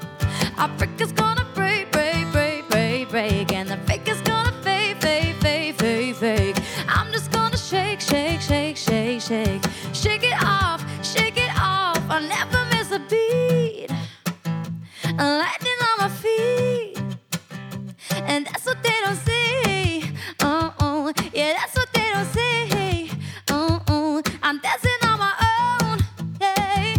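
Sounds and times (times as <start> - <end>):
acoustic song: 0.0 - 26.9.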